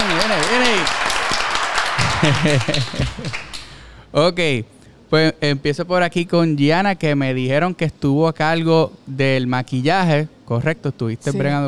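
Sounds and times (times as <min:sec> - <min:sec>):
audience applause in a room: 0:00.0 - 0:03.8
laughter: 0:02.0 - 0:03.6
speech: 0:02.2 - 0:03.5, 0:04.1 - 0:11.6.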